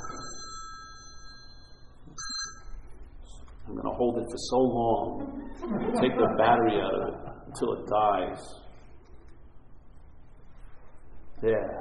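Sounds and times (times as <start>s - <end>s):
phone shrill electronic tone: 0.0s - 2.9s
speech: 3.7s - 8.6s, 11.4s - 11.7s
laughter: 5.0s - 7.8s.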